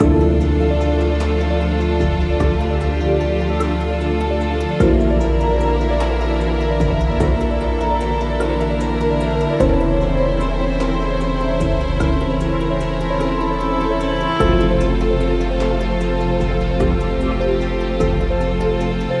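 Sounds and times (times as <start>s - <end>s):
music loop: 0.0s - 19.1s.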